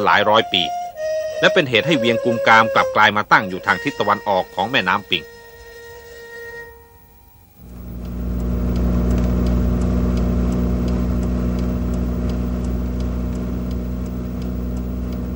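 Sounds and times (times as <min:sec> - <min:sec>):
speech: 0:00.0 - 0:00.8, 0:01.4 - 0:05.3
faint regular ticking: 0:00.0 - 0:15.3
car traffic on a highway: 0:08.3 - 0:15.3.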